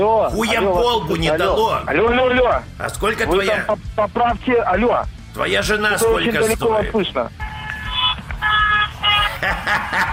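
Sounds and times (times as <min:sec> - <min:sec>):
speech: 0:00.0 - 0:07.4, 0:09.4 - 0:10.1
car horn honking: 0:07.4 - 0:09.3
laughter: 0:09.0 - 0:10.1.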